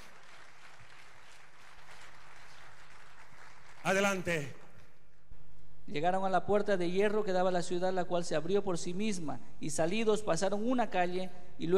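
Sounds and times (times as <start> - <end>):
audience applauding: 0.0 - 4.9
speech: 3.8 - 4.6, 5.9 - 11.7.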